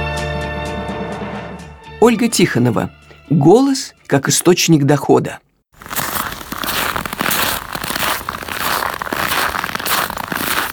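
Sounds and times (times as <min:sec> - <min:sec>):
speech: 0:02.0 - 0:06.0
crackling hard frost: 0:05.8 - 0:10.7.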